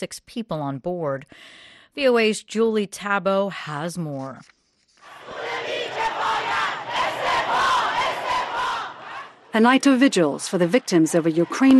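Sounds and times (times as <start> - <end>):
speech: 0.0 - 4.6, 9.5 - 11.7
protesters chanting and shouting: 5.0 - 11.7.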